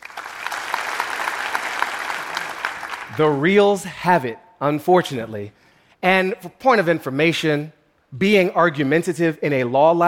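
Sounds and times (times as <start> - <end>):
audience clapping hands: 0.0 - 3.5
speech: 3.1 - 10.0.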